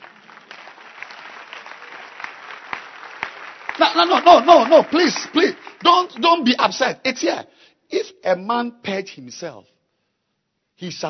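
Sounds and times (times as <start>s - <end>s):
audience clapping: 0.0s - 6.9s
speech: 3.8s - 9.7s, 10.8s - 11.0s.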